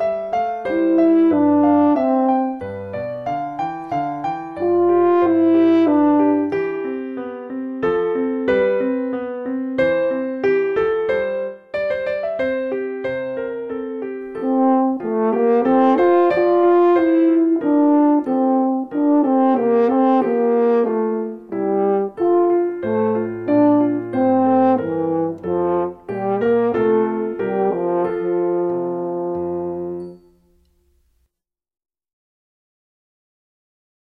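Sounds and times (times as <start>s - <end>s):
French horn solo: 0.0s - 2.7s, 4.6s - 6.8s, 14.4s - 30.4s
piano accompaniment: 0.0s - 31.2s.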